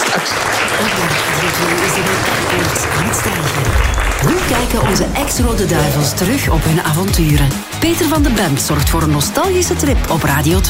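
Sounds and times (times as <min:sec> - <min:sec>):
audience applause: 0:00.0 - 0:06.6
speech: 0:01.6 - 0:10.6.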